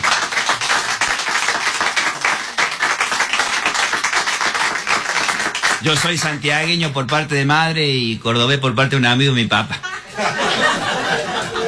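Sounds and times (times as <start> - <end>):
audience applause: 0.0 - 6.4
speech: 5.8 - 11.6
laughter: 9.7 - 11.6.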